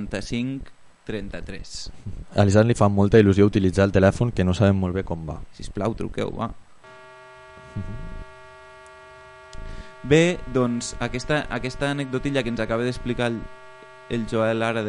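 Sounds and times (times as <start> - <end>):
speech: 0.0 - 6.6, 7.8 - 8.2, 10.0 - 14.8
computer hum: 6.8 - 14.8.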